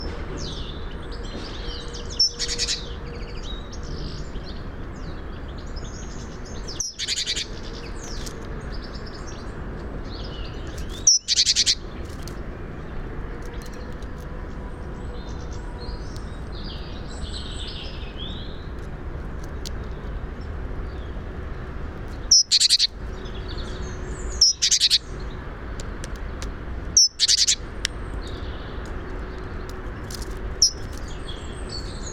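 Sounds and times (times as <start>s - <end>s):
other birds chirping: 0.0s - 32.1s
great tit churring calls: 6.7s - 7.6s, 11.1s - 11.8s, 22.3s - 25.1s, 27.0s - 27.8s, 30.6s - 31.9s.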